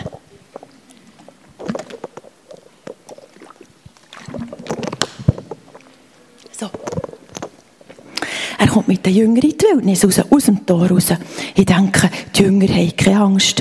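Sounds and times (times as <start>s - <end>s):
taking a quick sip of water: 0.0s - 9.3s
speech: 8.8s - 13.5s.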